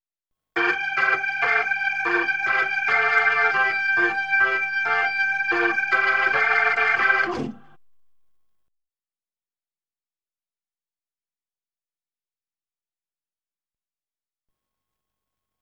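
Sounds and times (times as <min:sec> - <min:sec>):
Hammond B3 organ: 0:00.6 - 0:07.8.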